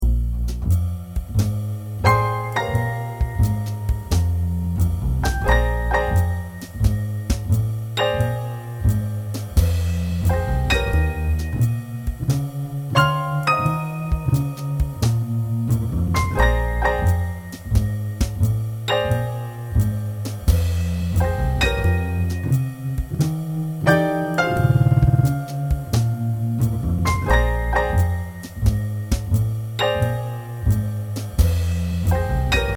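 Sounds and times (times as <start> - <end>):
blues music: 0.0 - 32.7.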